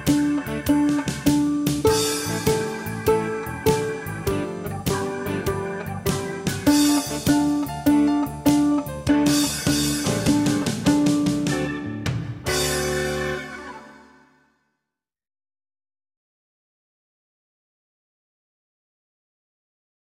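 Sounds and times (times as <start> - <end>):
guitar playing blues on open strings: 0.0 - 14.2.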